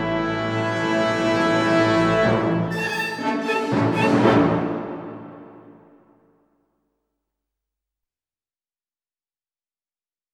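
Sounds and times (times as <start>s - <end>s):
Chinese orchestral music on Cantonese folk themes: 0.0s - 6.2s.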